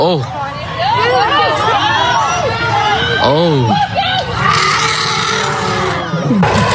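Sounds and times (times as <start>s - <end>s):
speech: 0.0s - 0.4s, 3.3s - 4.0s
people screaming and shouting: 0.4s - 6.7s
elephant roaring and charging: 4.4s - 6.7s.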